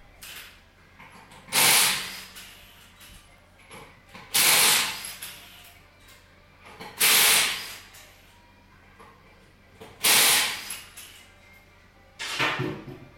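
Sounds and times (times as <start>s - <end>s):
low hum: 0.0s - 13.1s
pneumatic impact wrench removing car tires: 1.5s - 2.8s, 4.3s - 5.7s, 7.0s - 8.0s, 10.0s - 11.1s.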